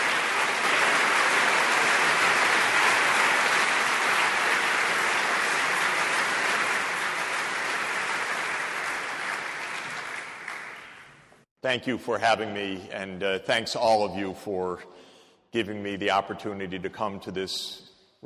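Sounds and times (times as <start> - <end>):
applause from an overflow audience in the main auditorium: 0.0 - 11.4
speech: 11.7 - 18.2.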